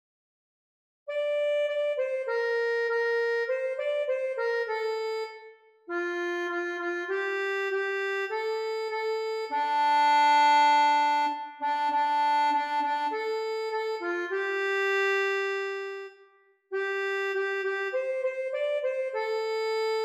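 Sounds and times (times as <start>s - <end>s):
accordion: 1.1s - 20.0s.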